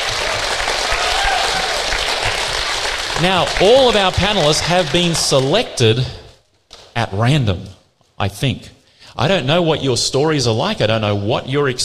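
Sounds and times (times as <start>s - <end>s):
audience applause: 0.0s - 5.7s
speech: 3.2s - 6.2s, 7.0s - 11.8s.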